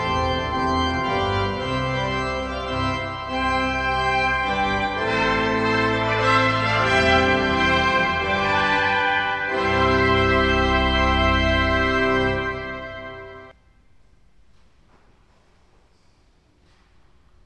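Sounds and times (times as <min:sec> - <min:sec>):
trumpet duet in a cathedral: 0:00.0 - 0:13.5.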